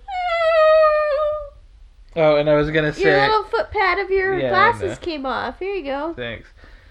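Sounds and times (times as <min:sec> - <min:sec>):
person imitating a rubber chicken squeal: 0:00.0 - 0:01.6
speech: 0:02.2 - 0:06.6.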